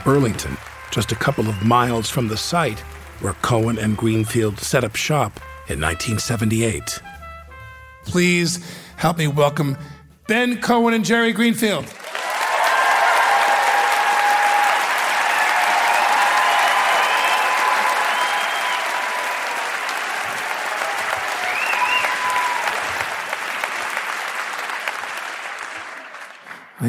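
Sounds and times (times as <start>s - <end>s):
crowd applauding: 0.0s - 5.3s, 11.9s - 26.8s
speech: 0.0s - 7.1s, 8.0s - 12.0s
faint whoops and cheers: 12.1s - 23.6s.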